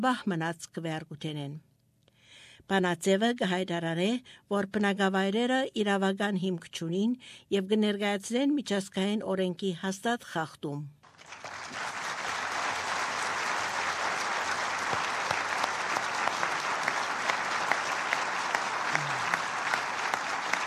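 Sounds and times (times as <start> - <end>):
speech: 0.0 - 1.7, 2.6 - 11.5
applause in the UN Security Council chamber after a resolution vote: 11.0 - 20.6.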